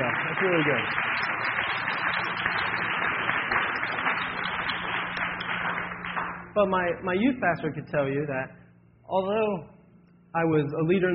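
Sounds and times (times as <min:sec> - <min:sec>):
audience applause: 0:00.0 - 0:06.6
speech: 0:00.4 - 0:01.5, 0:06.6 - 0:09.7, 0:10.3 - 0:11.1.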